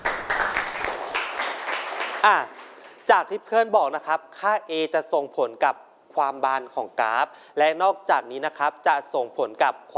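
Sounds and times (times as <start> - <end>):
classroom applause: 0.0 - 3.0
speech: 2.2 - 2.5, 3.1 - 9.9.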